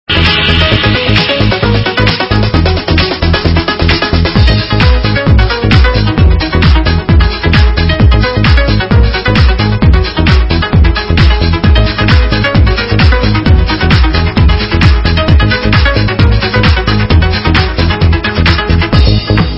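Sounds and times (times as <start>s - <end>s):
trance music: 0.1s - 19.5s.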